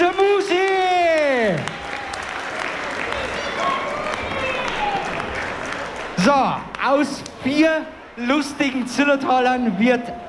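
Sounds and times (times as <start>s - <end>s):
audience applause: 0.0s - 6.7s
speech: 6.2s - 10.2s.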